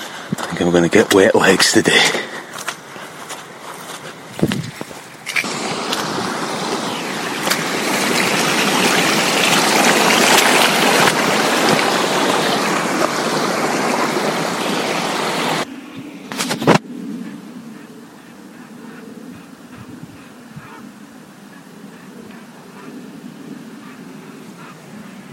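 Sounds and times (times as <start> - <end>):
rainwater running down a hill path in Glen Finlas: 0.0 - 15.7
speech: 0.5 - 2.3.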